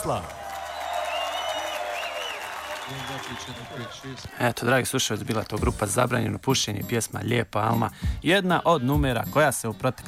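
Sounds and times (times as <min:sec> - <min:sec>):
speech: 0:00.0 - 0:00.4, 0:02.9 - 0:10.0
audience applause: 0:00.0 - 0:04.3.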